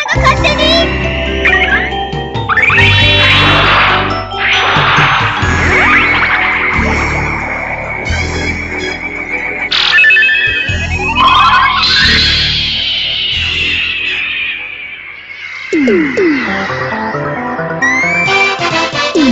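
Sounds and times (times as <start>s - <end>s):
ringtone: 0.1s - 19.2s.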